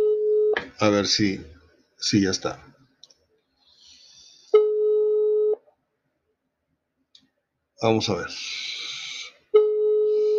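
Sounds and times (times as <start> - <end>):
telephone line tone as a call is cut and redialed: 0.0 - 0.6, 4.6 - 5.6, 9.6 - 10.3
speech: 0.8 - 2.7, 7.8 - 8.7.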